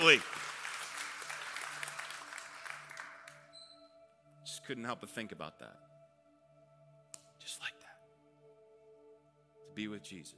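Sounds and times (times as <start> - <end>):
speech: 0.0 - 0.4, 4.7 - 5.9, 9.8 - 10.3
audience applause: 0.0 - 3.4.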